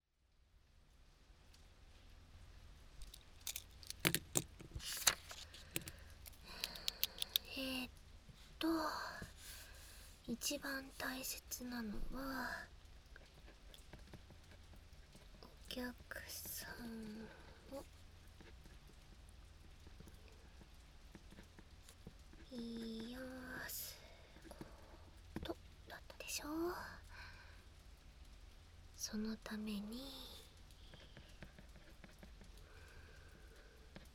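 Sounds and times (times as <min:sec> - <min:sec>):
rain: 0:00.3 - 0:03.9, 0:06.6 - 0:34.1
ear cleaning scratching: 0:03.0 - 0:07.5.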